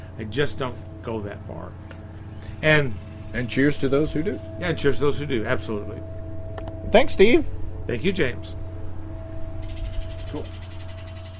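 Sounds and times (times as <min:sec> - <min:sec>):
birds singing: 0:00.0 - 0:11.3
speech: 0:00.2 - 0:02.0, 0:02.6 - 0:06.2, 0:06.9 - 0:08.6, 0:10.3 - 0:10.6.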